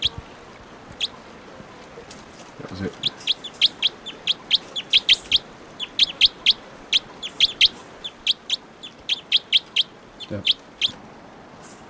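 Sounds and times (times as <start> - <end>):
steady hiss: 0.0 - 11.8
speech: 2.6 - 3.1
bird chirping: 2.8 - 11.0.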